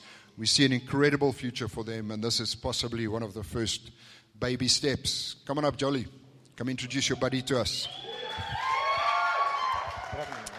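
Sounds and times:
speech: 0:00.4 - 0:08.6, 0:10.1 - 0:10.5
audience applause: 0:07.9 - 0:10.5.

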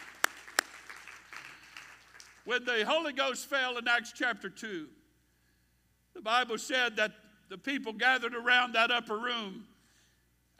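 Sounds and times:
audience clapping hands: 0:00.0 - 0:02.5
speech: 0:02.4 - 0:05.0, 0:06.2 - 0:09.7.

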